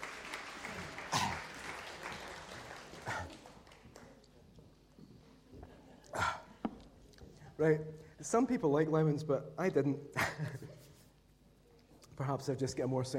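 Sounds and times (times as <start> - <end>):
audience applause: 0.0 - 4.2
speech: 7.6 - 10.8, 12.2 - 13.1.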